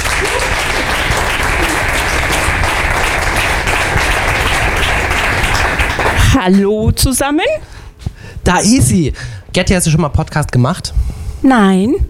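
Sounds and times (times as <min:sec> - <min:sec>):
audience applause: 0:00.0 - 0:06.4
speech: 0:06.4 - 0:07.7, 0:08.4 - 0:12.0.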